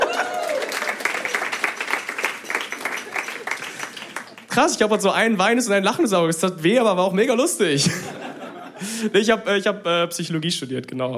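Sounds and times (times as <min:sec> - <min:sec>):
person whooping: 0:00.0 - 0:01.0
laughter: 0:00.0 - 0:01.3, 0:07.8 - 0:09.1
audience applause: 0:00.0 - 0:04.5
speech: 0:04.6 - 0:08.2, 0:09.0 - 0:11.1.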